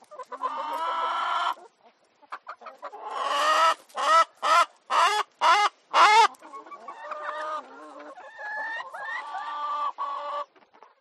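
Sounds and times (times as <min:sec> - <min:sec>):
chicken hens cackling: 0:00.0 - 0:10.9.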